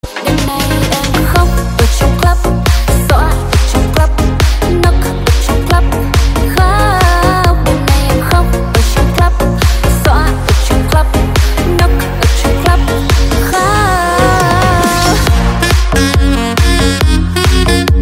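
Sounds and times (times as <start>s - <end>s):
remix music: 0.0s - 17.9s.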